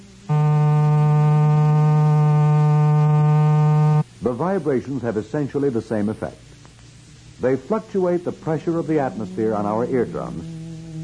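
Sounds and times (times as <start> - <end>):
electrical buzzer: 0.0 - 4.1
speech: 4.3 - 6.5, 7.4 - 11.0.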